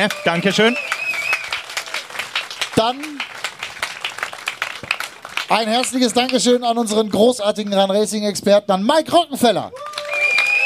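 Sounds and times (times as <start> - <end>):
speech: 0.0 - 0.9, 2.8 - 3.3, 5.5 - 9.9
audience applause at Lausitzring racetrack: 0.0 - 7.2, 9.7 - 10.6.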